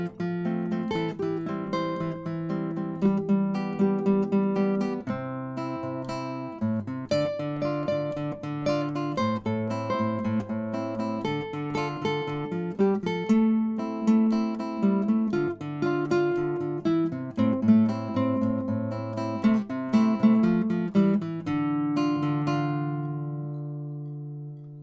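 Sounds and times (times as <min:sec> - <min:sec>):
acoustic rock duet: 0:00.0 - 0:24.6.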